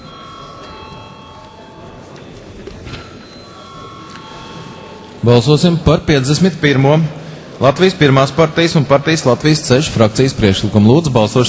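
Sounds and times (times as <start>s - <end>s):
electric parliament chamber bell ringing: 0.0s - 6.5s
speech: 5.2s - 11.4s.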